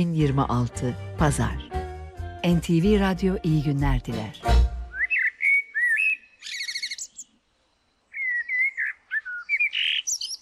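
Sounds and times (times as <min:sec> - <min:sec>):
speech: 0:00.0 - 0:01.7, 0:02.4 - 0:04.6
common blackbird singing at dawn: 0:04.9 - 0:10.4.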